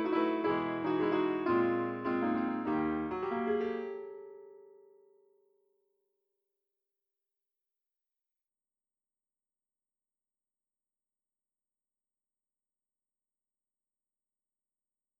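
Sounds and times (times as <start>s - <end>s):
piano: 0.0s - 5.3s.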